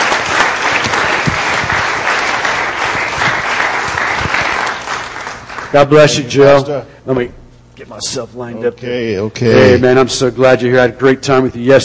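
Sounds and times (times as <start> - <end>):
audience applause: 0.0 - 5.8
speech: 5.7 - 11.8.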